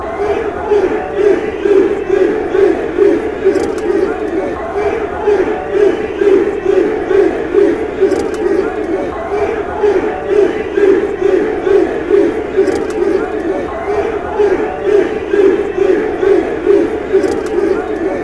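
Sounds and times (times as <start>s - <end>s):
fans chanting: 0.0s - 18.2s
laughter: 0.0s - 18.2s.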